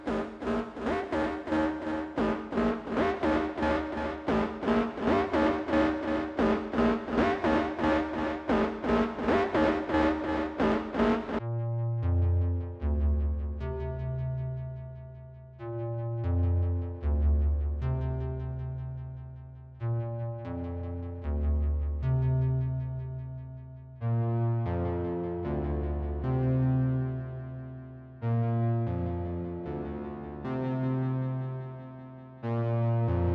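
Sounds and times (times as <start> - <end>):
Prophet 6 synthesizer: 0.0 - 33.3.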